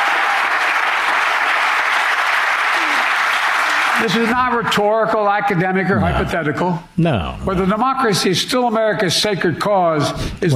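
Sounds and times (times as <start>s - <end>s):
audience applause: 0.0s - 4.4s
speech: 4.0s - 10.5s.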